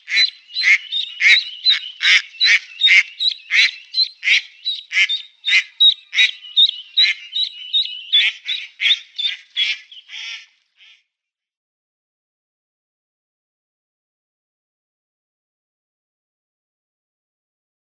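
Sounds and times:
female mallards quacking: 0.0 - 11.0.

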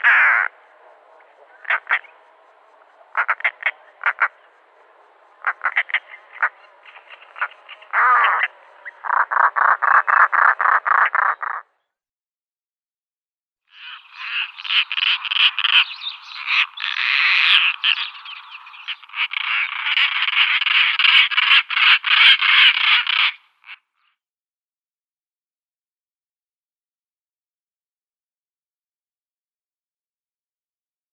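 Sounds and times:
European roller harsh croaking calls: 0.0 - 2.3, 3.0 - 11.8, 13.7 - 24.1.

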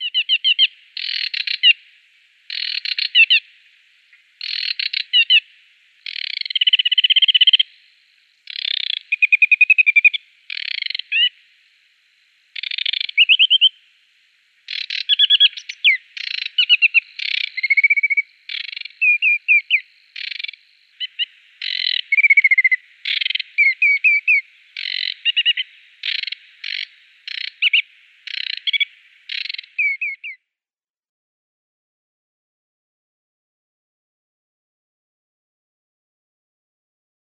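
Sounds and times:
Aquatic Warbler song: 0.0 - 30.5.

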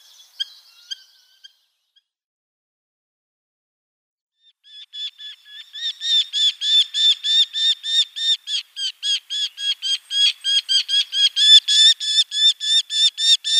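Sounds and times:
Eurasian hobby giving sharp high calls: 5.0 - 13.5.

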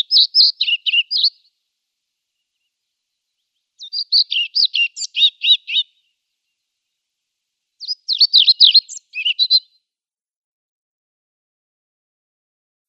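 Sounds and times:
European pied flycatcher singing: 0.0 - 1.5, 3.3 - 6.1, 7.8 - 9.7.

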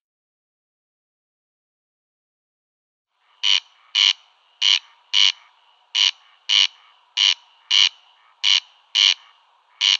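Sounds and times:
Corn crake display call, harsh grating crex-crex rasps: 3.4 - 9.9.

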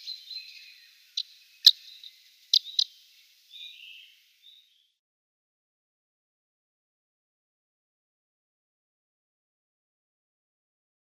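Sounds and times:
Eurasian crag martin calls: 0.0 - 5.0.

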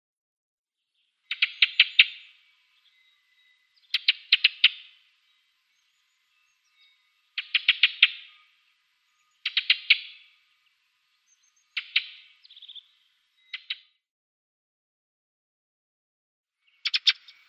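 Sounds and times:
ring ouzel harsh ticking calls: 1.3 - 5.5, 6.5 - 10.8, 11.4 - 13.9, 16.7 - 17.4.

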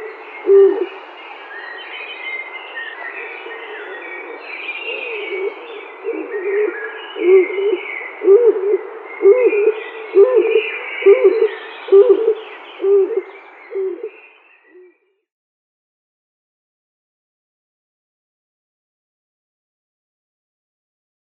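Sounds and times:
male stock dove giving a display call: 0.0 - 1.0, 3.2 - 14.1.

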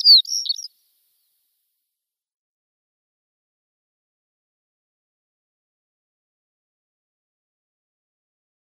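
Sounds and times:
shore lark singing: 0.0 - 0.8.

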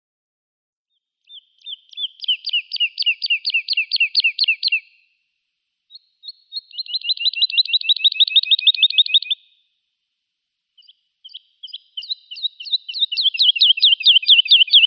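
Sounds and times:
woodlark singing: 1.2 - 5.1, 5.9 - 9.6, 10.8 - 14.8.

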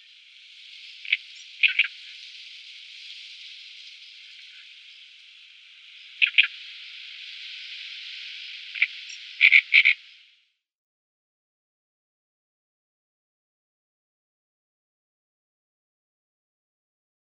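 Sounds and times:
Great reed warbler singing: 0.0 - 10.3.

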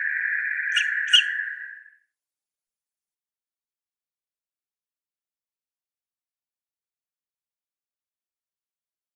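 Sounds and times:
Little Owl nestlings calling: 0.0 - 1.9.

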